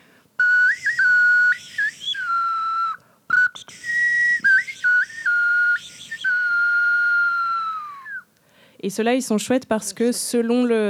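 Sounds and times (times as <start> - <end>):
small hand-held whistle being blown: 0.4 - 8.3
speech: 8.8 - 10.8.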